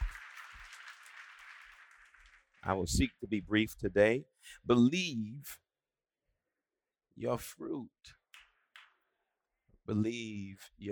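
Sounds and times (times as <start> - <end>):
audience clapping hands: 0.0 - 3.2
speech: 2.6 - 5.6, 7.2 - 8.2, 9.9 - 10.9.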